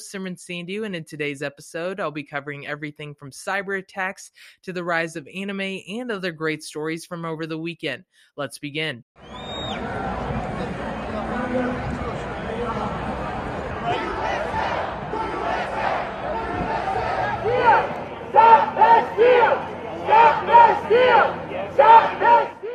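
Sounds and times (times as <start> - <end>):
speech: 0.0 - 9.5
crowd of Trump supporters roaring at the Million MAGA March: 9.2 - 22.7.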